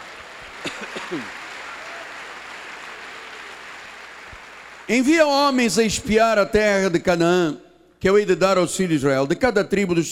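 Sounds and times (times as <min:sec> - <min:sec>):
audience applause: 0:00.0 - 0:04.9
speech: 0:01.1 - 0:01.4, 0:04.9 - 0:10.0.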